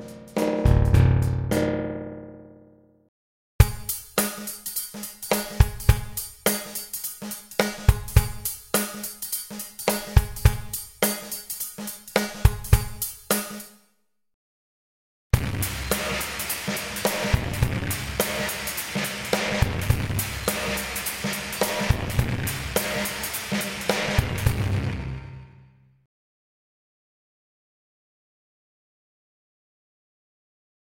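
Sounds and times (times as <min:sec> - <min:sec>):
drum loop: 0:00.0 - 0:01.8, 0:03.6 - 0:13.7, 0:15.4 - 0:25.0.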